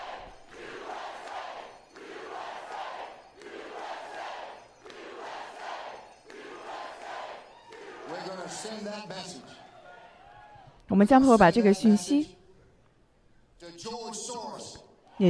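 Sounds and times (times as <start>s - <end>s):
crowd chanting at a rally: 0.0s - 10.6s
speech: 8.6s - 9.6s, 10.9s - 12.4s.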